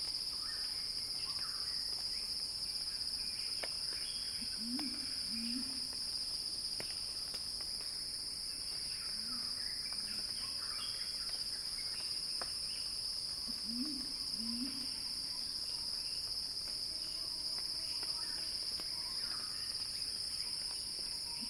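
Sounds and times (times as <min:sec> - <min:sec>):
cicadas droning: 0:00.0 - 0:21.4.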